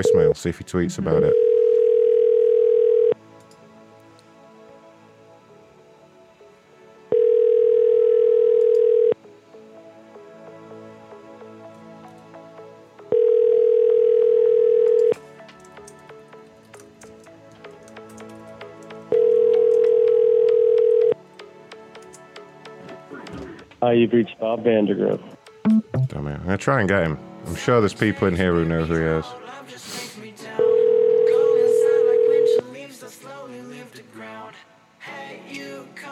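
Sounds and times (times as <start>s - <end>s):
ringing tone of an outgoing telephone call: 0.0s - 0.4s, 1.0s - 3.2s, 7.1s - 9.2s, 13.0s - 15.2s, 19.1s - 21.2s, 30.6s - 32.6s
speech: 0.0s - 1.6s, 23.8s - 25.4s, 26.2s - 29.9s.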